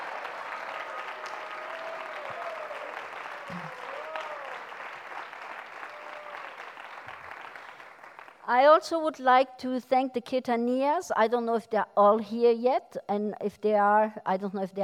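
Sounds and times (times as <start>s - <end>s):
room full of people applauding: 0.0s - 8.4s
speech: 8.5s - 14.8s.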